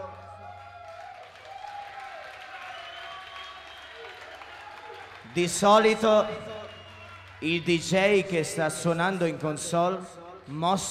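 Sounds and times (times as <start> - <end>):
audience applause: 0.0 - 7.9
speech: 5.3 - 6.5, 7.4 - 10.8.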